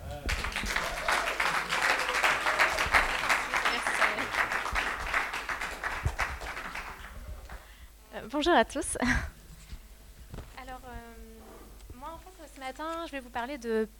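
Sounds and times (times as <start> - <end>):
audience applauding: 0.0 - 7.6
speech: 8.3 - 9.4, 13.1 - 13.9.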